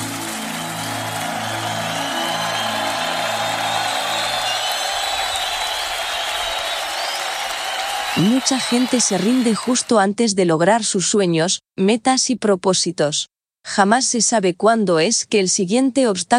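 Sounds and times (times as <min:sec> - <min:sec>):
low sustained keyboard chords: 0:00.0 - 0:06.1
audience applause: 0:00.0 - 0:09.9
speech: 0:08.2 - 0:16.3.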